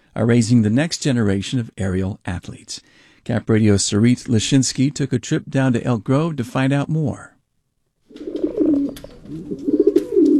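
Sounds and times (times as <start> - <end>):
speech: 0.2 - 7.3
pigeon cooing: 8.1 - 10.3.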